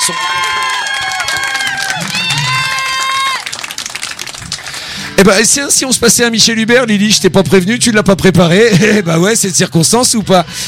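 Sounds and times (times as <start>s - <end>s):
speech: 0.0s - 0.5s, 5.2s - 10.6s
high-pitched cheering and shouting voices: 0.0s - 3.5s
audience applauding children: 0.0s - 5.2s.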